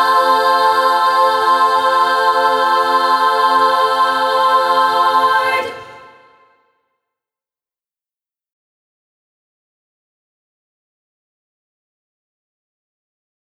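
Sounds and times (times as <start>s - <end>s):
voices singing a Christmas carol without accompaniment: 0.0s - 6.5s.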